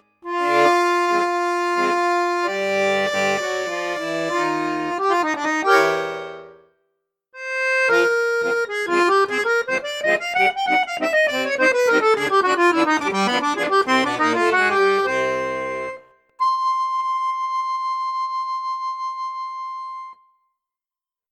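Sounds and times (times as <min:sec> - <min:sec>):
Crucianelli Super King accordion on bassoon flute piccolo register: 0:00.0 - 0:06.7, 0:07.4 - 0:20.2.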